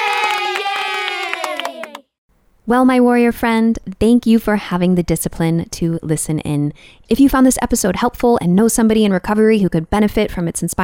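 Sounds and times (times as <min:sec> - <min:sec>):
round of applause: 0:00.0 - 0:02.1
speech: 0:02.7 - 0:10.8.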